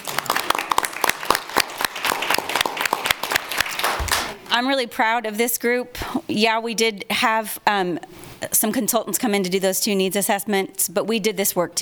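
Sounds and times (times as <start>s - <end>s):
audience applause: 0.0s - 4.5s
speech: 4.6s - 11.7s.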